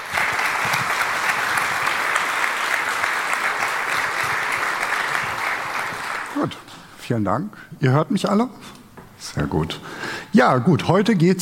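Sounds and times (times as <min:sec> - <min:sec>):
audience applause: 0:00.0 - 0:06.7
speech: 0:06.4 - 0:11.4.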